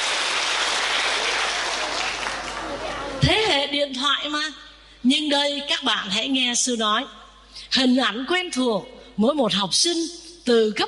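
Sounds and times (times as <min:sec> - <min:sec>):
audience applause: 0:00.0 - 0:03.2
speech: 0:03.2 - 0:10.8.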